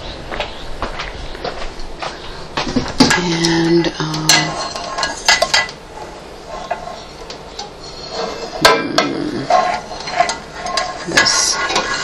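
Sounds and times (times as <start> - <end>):
pans clanking as skillet is taken out: 2.6 - 12.0
speech: 3.2 - 4.3.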